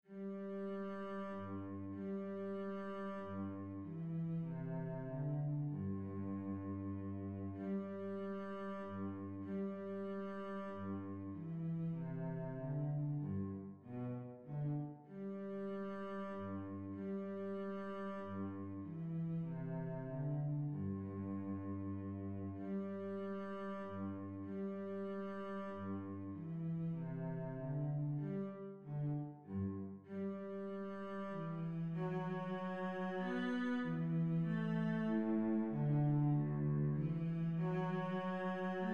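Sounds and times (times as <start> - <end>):
minuet: 0.2 - 38.9.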